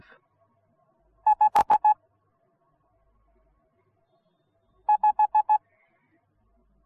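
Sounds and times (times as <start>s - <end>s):
morse code beeps: 1.3s - 1.9s, 4.9s - 5.6s.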